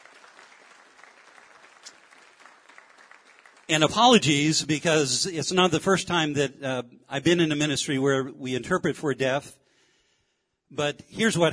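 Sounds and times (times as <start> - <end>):
audience applause welcoming the deaf interpreter at a ministry gathering: 0.0 - 4.4
speech: 3.7 - 9.6, 10.7 - 11.5.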